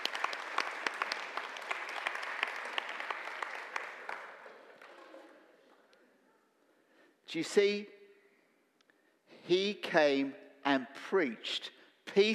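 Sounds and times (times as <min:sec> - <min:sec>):
round of applause: 0:00.0 - 0:05.3
speech: 0:07.3 - 0:08.0, 0:09.5 - 0:12.3.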